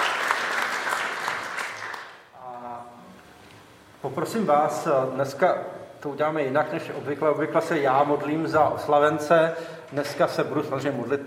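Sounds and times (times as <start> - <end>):
room full of people clapping: 0.0 - 2.3
speech: 4.0 - 11.2.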